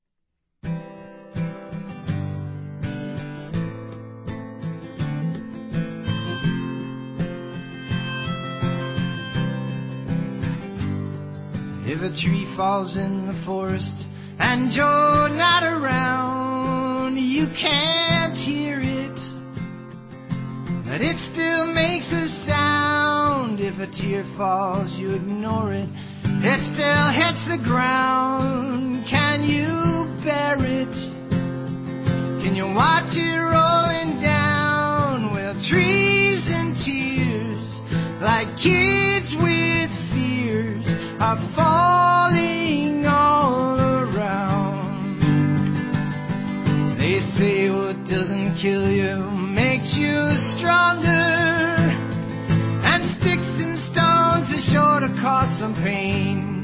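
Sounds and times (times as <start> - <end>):
acoustic music: 0.6 - 56.6.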